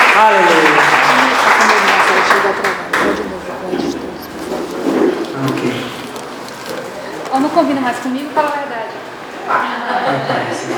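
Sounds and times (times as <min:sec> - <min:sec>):
church congregation applauding: 0:00.0 - 0:07.3
speech: 0:00.2 - 0:00.7, 0:07.6 - 0:10.7.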